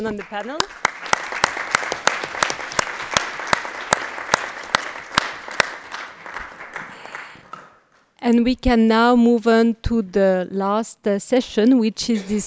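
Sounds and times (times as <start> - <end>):
speech: 0.0 - 0.9, 8.2 - 12.4
audience applause for panelists: 0.0 - 7.8.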